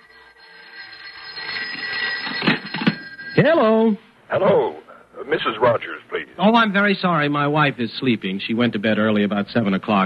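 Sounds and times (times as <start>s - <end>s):
telephone ringing: 0.0s - 4.0s
speech: 3.4s - 10.0s.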